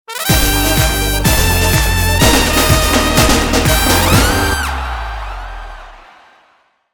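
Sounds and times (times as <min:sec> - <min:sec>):
Brazilian-style music sting: 0:00.3 - 0:05.2.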